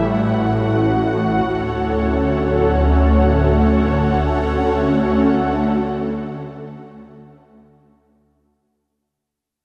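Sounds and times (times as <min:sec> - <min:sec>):
synthesizer strings stack factory patch: 0:00.0 - 0:07.2.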